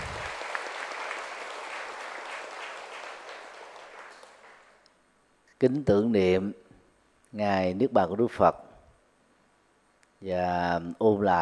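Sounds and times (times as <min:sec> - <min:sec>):
applause at a Buddhist Nirvana Day commemoration: 0:00.0 - 0:04.8
speech: 0:05.6 - 0:06.6, 0:07.3 - 0:08.6, 0:10.2 - 0:11.4.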